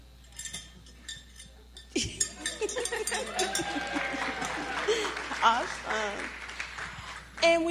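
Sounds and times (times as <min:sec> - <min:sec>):
small bell being rung: 0:00.4 - 0:04.6
laughter: 0:02.0 - 0:06.0
speech: 0:07.4 - 0:07.6.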